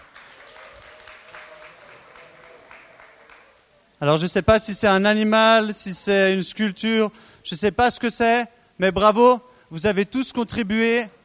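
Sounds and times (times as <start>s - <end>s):
audience applauding: 0.0s - 3.6s
speech: 4.0s - 11.2s.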